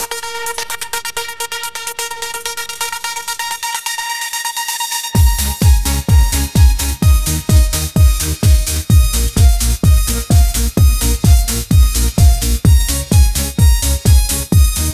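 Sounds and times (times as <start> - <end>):
electronic dance music ringtone: 0.0 - 14.9.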